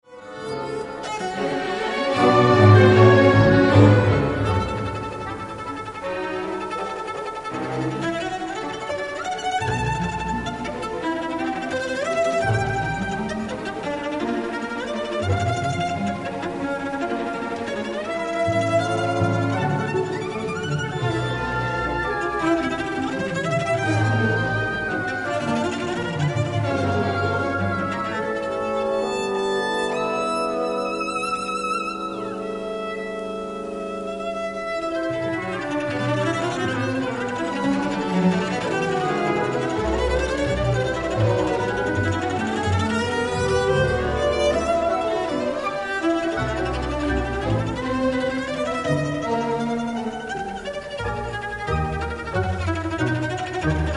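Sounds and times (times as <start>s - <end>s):
cello concerto: 0.0s - 53.9s.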